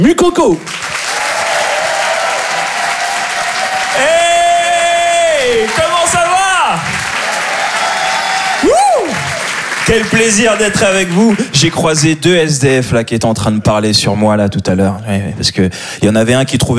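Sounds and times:
speech: 0.0s - 0.9s, 5.6s - 7.0s, 8.6s - 9.3s, 9.9s - 16.7s
audience clapping for a comedian on a comedy show: 0.0s - 12.8s
whoops and shouted cheers: 1.0s - 9.7s.

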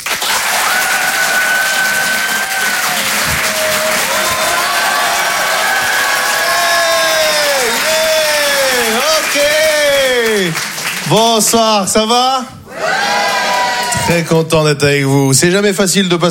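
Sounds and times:
comedy club audience applauding and cheering for a stand-up comedian: 0.0s - 11.8s, 12.7s - 14.3s
speech: 11.1s - 12.6s, 14.1s - 16.3s.

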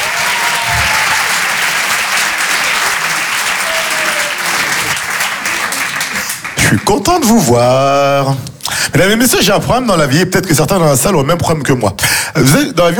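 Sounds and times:
audience applause at a comedy stage show: 0.0s - 7.3s
speech: 6.9s - 12.9s.

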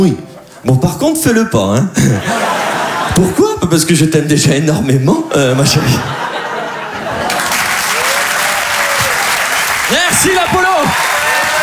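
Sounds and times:
speech: 0.0s - 6.3s, 9.9s - 11.1s
laughter: 2.0s - 3.6s, 5.4s - 11.6s
audience applause: 6.9s - 11.6s.

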